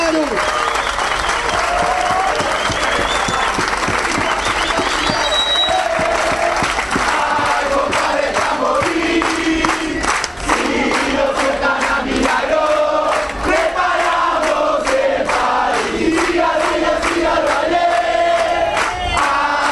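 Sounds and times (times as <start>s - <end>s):
scattered shouts: 0.0s - 6.8s
crowd applause: 0.0s - 19.6s
whistles: 0.4s - 6.0s.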